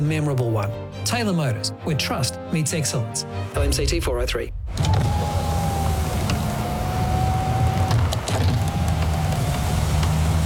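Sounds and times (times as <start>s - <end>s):
speech: 0.0s - 5.0s
car power windows whirring: 4.7s - 10.4s
constant low car hum: 4.7s - 10.4s.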